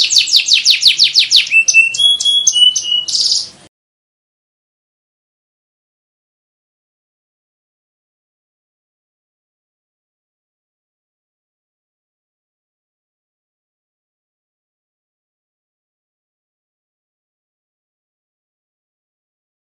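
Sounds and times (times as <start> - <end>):
canary training song of rapid high trills and rolling tours: 0.0 - 3.6.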